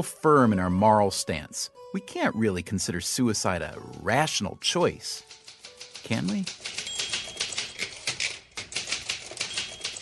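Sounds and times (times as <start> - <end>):
speech: 0.0 - 5.4, 6.0 - 6.8
fast typing on a Smith Corona manual typewriter: 5.0 - 10.0.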